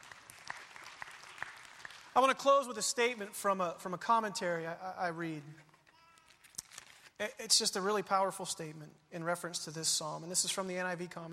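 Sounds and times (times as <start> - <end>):
room full of people clapping: 0.0 - 2.5
speech: 2.2 - 5.7, 7.2 - 11.3.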